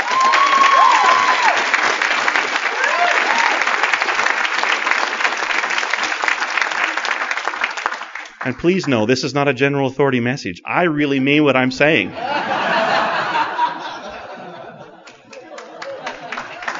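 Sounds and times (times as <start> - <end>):
audience applause: 0.0 - 8.7, 15.0 - 16.7
speech: 8.4 - 12.4
laughter: 12.1 - 16.7.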